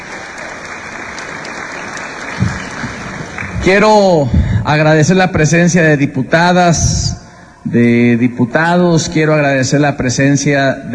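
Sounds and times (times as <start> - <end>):
audience applause: 0.0 - 4.2
speech: 3.6 - 10.9.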